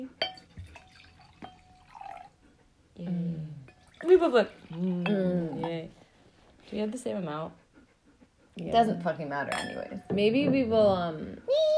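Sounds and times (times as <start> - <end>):
light glassy clinks: 0.2 - 2.3, 5.0 - 5.8, 9.5 - 10.0
wine pouring into a glass: 0.2 - 2.4, 3.6 - 4.8
speech: 4.1 - 6.0, 6.7 - 7.6, 8.6 - 11.7.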